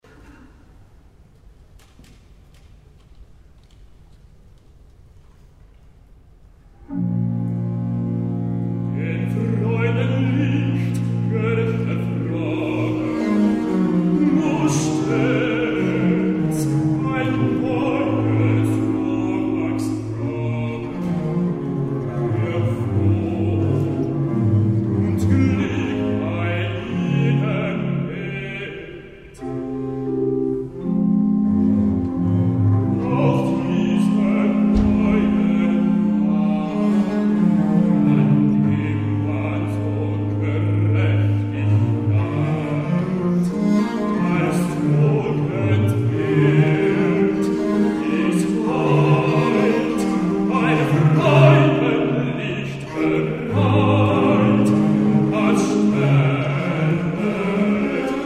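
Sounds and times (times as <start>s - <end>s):
recitative singing: 6.8s - 58.2s.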